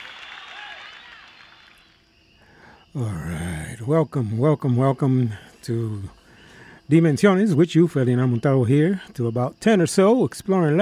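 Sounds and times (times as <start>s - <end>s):
crowd noise: 0.0s - 1.9s
faint applause: 0.0s - 2.0s
speech: 2.9s - 6.2s, 6.9s - 10.7s.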